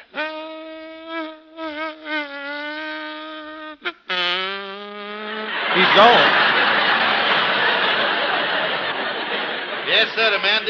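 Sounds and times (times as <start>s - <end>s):
voice imitating a mosquito landing on Limburger cheese: 0.0s - 5.6s
laughter: 5.3s - 10.6s
speech: 5.8s - 6.4s, 10.0s - 10.6s.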